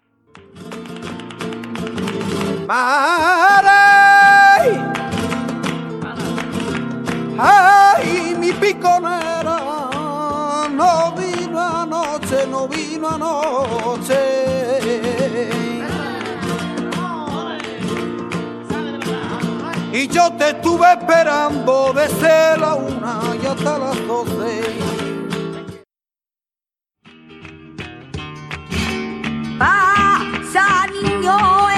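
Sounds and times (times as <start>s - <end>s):
tango and flamenco music: 0.0s - 25.9s, 27.0s - 31.7s.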